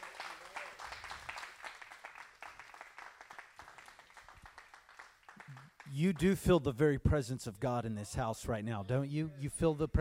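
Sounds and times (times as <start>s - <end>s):
audience clapping hands: 0.0s - 6.6s
speech: 5.9s - 9.9s.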